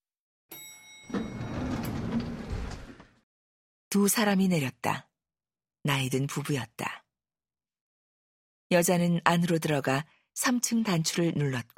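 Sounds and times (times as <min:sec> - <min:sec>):
elevator door opening: 0:01.0 - 0:03.2
speech: 0:03.9 - 0:05.1, 0:05.8 - 0:07.0, 0:08.7 - 0:11.7.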